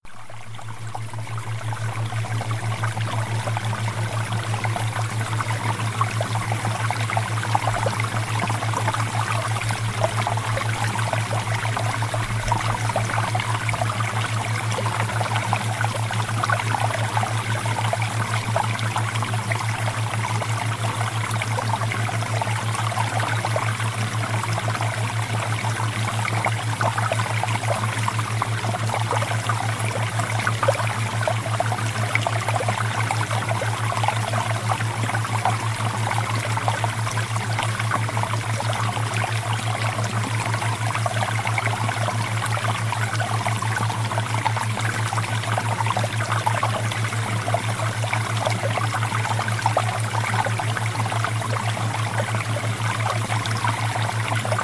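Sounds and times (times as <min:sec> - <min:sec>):
flowing water: 0:00.0 - 0:54.6.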